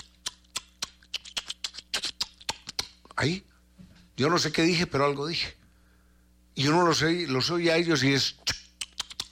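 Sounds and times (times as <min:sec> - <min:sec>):
imitated tongue clicks of a click language: 0:00.0 - 0:03.2, 0:08.4 - 0:09.2
speech: 0:03.2 - 0:03.5, 0:04.2 - 0:05.6, 0:06.6 - 0:08.6.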